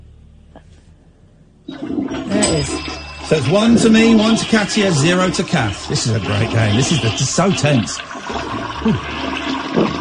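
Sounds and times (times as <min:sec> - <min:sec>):
toilet flushing: 0:01.6 - 0:09.9
speech: 0:01.7 - 0:09.9.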